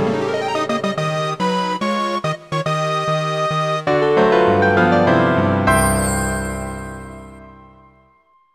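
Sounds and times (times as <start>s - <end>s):
swing music: 0.0s - 5.5s.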